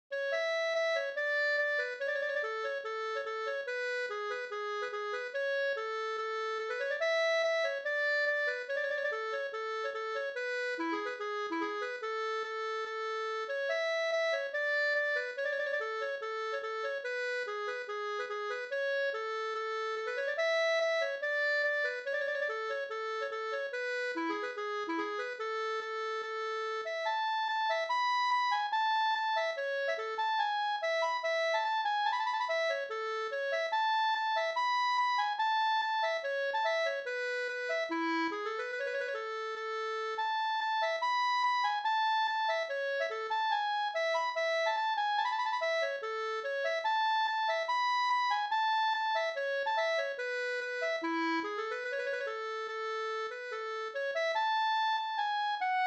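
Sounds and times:
reinlender folk dance music: 0.4 - 55.8.

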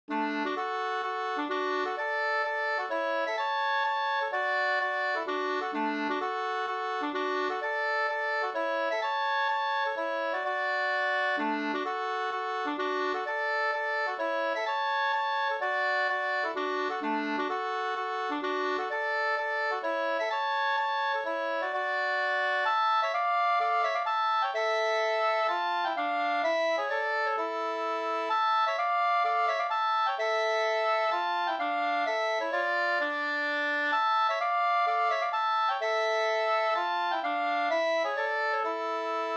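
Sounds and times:
two-part polska: 0.1 - 39.3.

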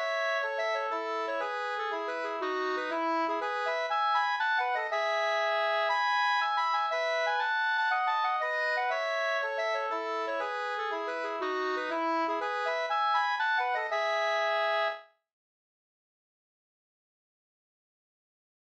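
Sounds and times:
polska folk dance tune: 0.0 - 15.0.

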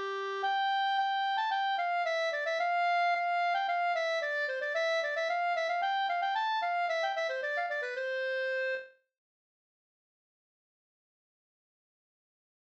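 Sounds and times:
folk walking tune: 0.0 - 8.9.

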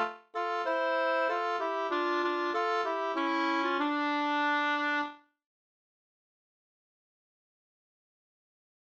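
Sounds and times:
folk song melody: 0.0 - 5.2.

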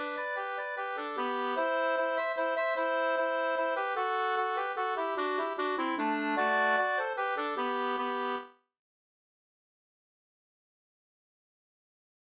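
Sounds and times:
mazurka: 0.0 - 8.4.

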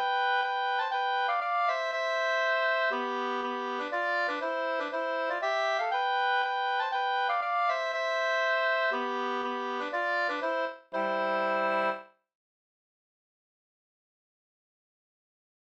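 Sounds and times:
polska folk dance tune: 0.0 - 12.0.

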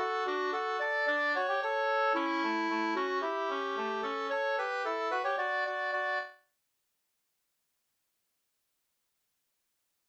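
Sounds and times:
polka music: 0.0 - 6.3.

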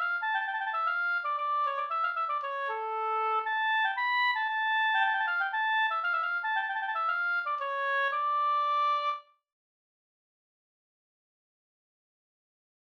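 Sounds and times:
polska folk dance tune: 0.0 - 9.2.

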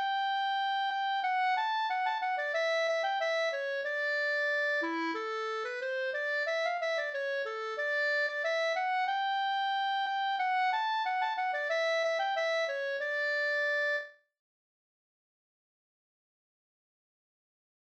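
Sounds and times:
folk song melody: 0.0 - 14.1.

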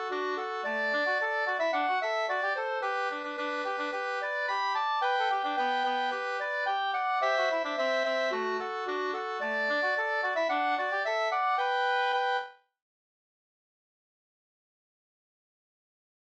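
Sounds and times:
polka: 0.0 - 12.6.

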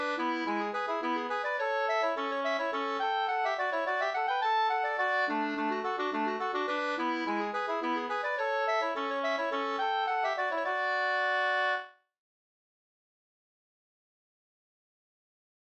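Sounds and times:
two-part polska folk dance tune: 0.0 - 11.9.

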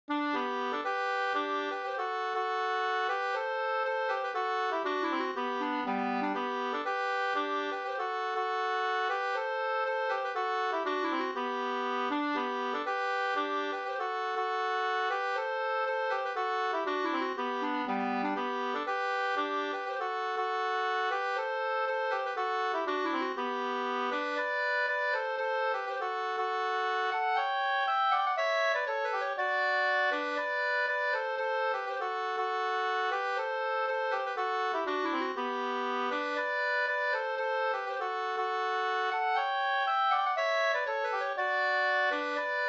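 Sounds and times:
two-part polska folk dance tune: 0.1 - 42.6.

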